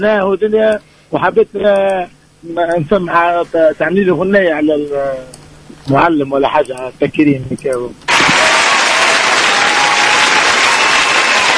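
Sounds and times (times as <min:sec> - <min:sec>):
speech: 0:00.0 - 0:08.0
audience applauding: 0:08.1 - 0:11.5.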